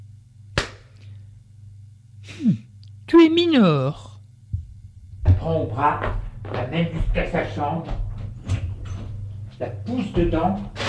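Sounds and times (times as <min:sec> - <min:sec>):
mother slapping her daughter across the face: 0:00.6 - 0:01.0
speech: 0:02.2 - 0:04.1, 0:05.4 - 0:08.0, 0:09.6 - 0:10.8.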